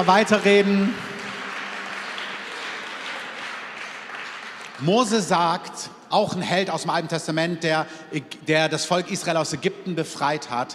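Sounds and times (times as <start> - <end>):
speech: 0.0 - 1.1, 4.8 - 10.7
audience applause: 0.0 - 5.3.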